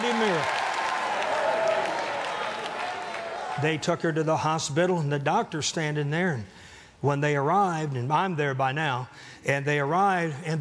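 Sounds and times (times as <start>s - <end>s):
audience clapping: 0.0s - 3.7s
speech: 3.6s - 10.6s.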